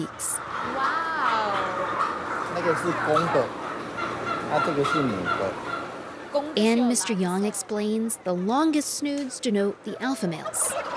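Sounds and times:
speech: 0:00.0 - 0:00.4, 0:02.6 - 0:03.6, 0:04.5 - 0:05.7, 0:06.3 - 0:10.9
flock of turkeys gobbling: 0:00.0 - 0:08.7, 0:09.9 - 0:10.9.

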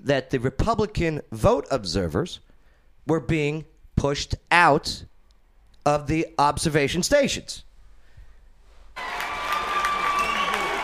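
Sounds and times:
speech: 0:00.0 - 0:05.1, 0:05.8 - 0:07.7
crowd cheering and clapping: 0:09.0 - 0:10.8.

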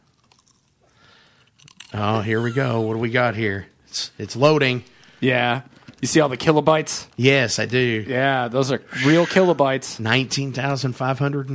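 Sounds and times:
crunching potato chips while eating: 0:00.0 - 0:02.2
speech: 0:01.9 - 0:11.5.

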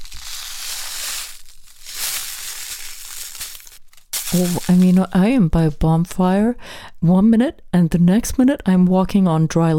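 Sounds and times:
sea salt crunching in a letter envelope: 0:00.0 - 0:05.2
speech: 0:04.3 - 0:09.7.

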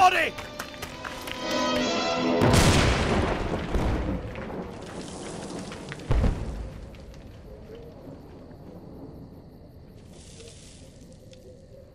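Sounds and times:
crackling debris: 0:00.2 - 0:08.7
fragmentation grenades exploding in a firefight: 0:02.3 - 0:07.4.

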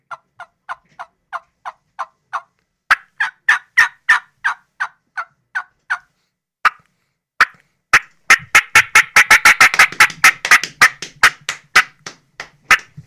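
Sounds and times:
turkey fly-down cackle on a turkey call: 0:00.1 - 0:06.8, 0:07.4 - 0:11.4
dull slaps: 0:08.4 - 0:13.0.

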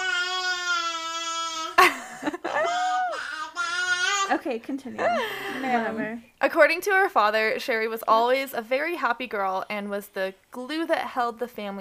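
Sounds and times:
baby screaming and crying: 0:00.0 - 0:01.8, 0:02.5 - 0:04.3
speech: 0:04.3 - 0:11.7.

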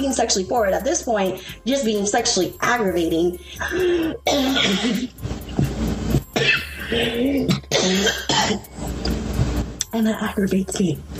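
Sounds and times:
speech: 0:00.0 - 0:05.3, 0:06.4 - 0:08.7, 0:10.0 - 0:11.1
person coughing and clearing throat after something went down the wrong way: 0:03.6 - 0:08.8.

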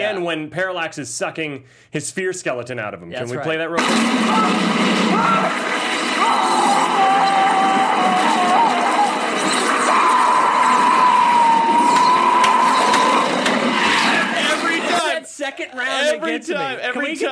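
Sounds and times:
speech: 0:00.0 - 0:07.5, 0:15.5 - 0:17.2
high-pitched cartoon character scream: 0:06.2 - 0:14.3.

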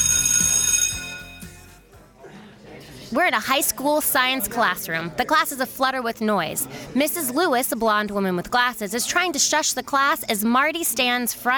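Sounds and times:
school bell ringing: 0:00.0 - 0:01.7
speech: 0:03.1 - 0:11.5.

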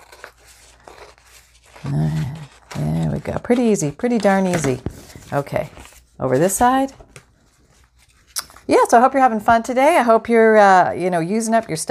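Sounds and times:
scissors cutting paper: 0:00.0 - 0:05.4
speech: 0:01.8 - 0:02.4, 0:03.2 - 0:07.0, 0:08.7 - 0:11.8.

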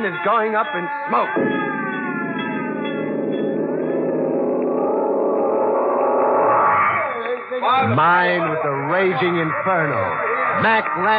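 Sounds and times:
speech: 0:00.0 - 0:01.9, 0:07.6 - 0:11.1
fire bell ringing: 0:01.2 - 0:06.4.

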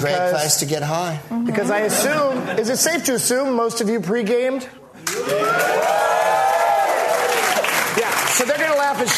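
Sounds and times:
speech: 0:00.0 - 0:05.9, 0:08.4 - 0:09.1
crowd cheering and whooping: 0:05.1 - 0:07.8.

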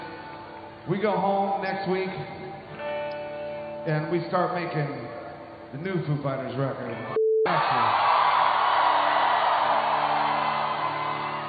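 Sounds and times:
speech: 0:00.9 - 0:02.5, 0:03.8 - 0:05.1, 0:05.7 - 0:08.1
large live concert crowd cheering, whooping and yelling: 0:07.4 - 0:11.4.

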